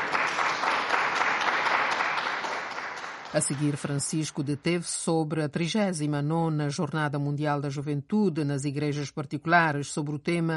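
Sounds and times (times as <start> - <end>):
crowd applause: 0.0 - 4.0
speech: 3.3 - 10.5.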